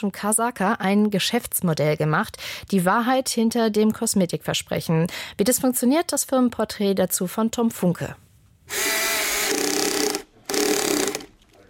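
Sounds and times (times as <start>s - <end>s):
speech: 0.0s - 9.0s
power screwdriver whirring during assembly in a production hall in Cologne-Ossendorf: 8.7s - 11.4s.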